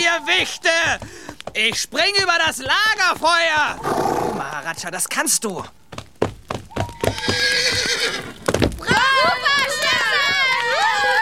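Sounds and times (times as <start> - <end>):
hoof clops: 0.0 - 11.1
speech: 0.4 - 5.8
horse whinnying: 3.8 - 4.5, 6.8 - 8.4.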